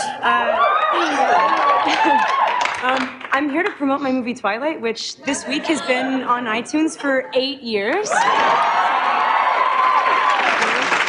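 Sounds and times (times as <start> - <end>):
speech: 0.2 - 0.6, 2.0 - 8.9
studio audience applause and cheering: 0.5 - 3.3, 8.1 - 11.0.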